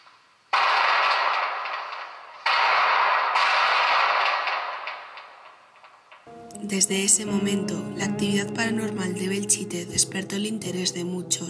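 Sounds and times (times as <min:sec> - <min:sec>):
bombs exploding on recording: 0:00.5 - 0:06.1
speech: 0:06.7 - 0:11.4.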